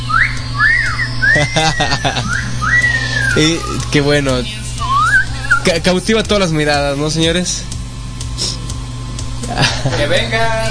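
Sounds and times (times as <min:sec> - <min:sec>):
person in a radio production team whistling: 0:00.0 - 0:03.8, 0:04.8 - 0:05.7
laughter: 0:01.3 - 0:02.8, 0:09.4 - 0:10.3
speech: 0:01.4 - 0:02.4, 0:03.4 - 0:04.6, 0:05.6 - 0:07.7, 0:09.5 - 0:10.6.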